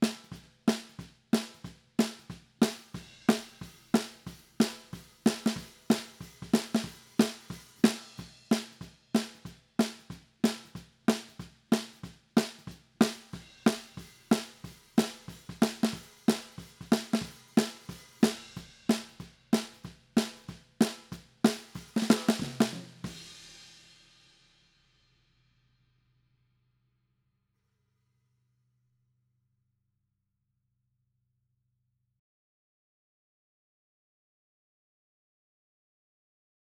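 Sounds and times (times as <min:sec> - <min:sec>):
snare drum bottom: 0:00.0 - 0:24.1.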